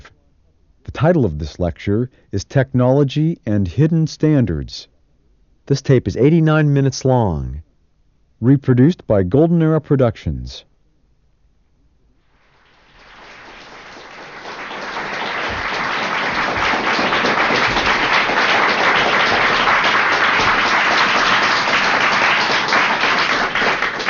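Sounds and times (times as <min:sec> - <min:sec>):
speech: 0:01.0 - 0:04.9, 0:05.7 - 0:07.7, 0:08.4 - 0:10.7
audience applause: 0:12.5 - 0:24.0.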